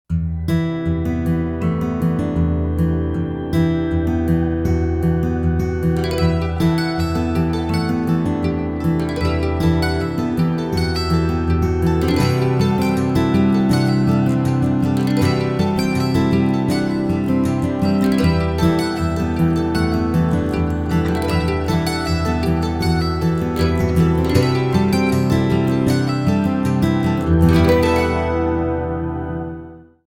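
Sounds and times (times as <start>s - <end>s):
mandolin: 0.3s - 30.0s.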